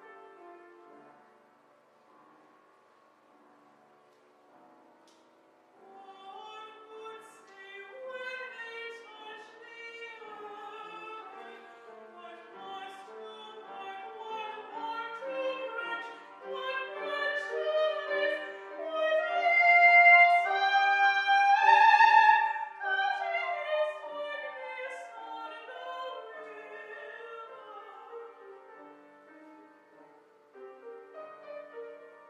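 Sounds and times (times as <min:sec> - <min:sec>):
opera singing: 0:05.8 - 0:28.7.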